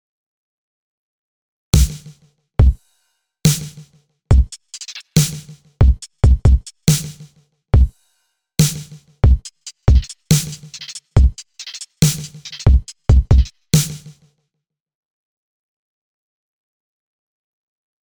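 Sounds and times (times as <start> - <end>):
drum: 1.8 - 2.8, 3.5 - 7.9, 8.6 - 14.2.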